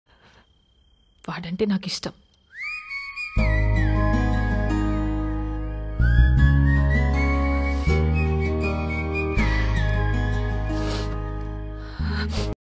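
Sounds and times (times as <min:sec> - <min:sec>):
whistle background music: 0:02.4 - 0:11.4
romantic instrumental ringtone: 0:02.4 - 0:12.3.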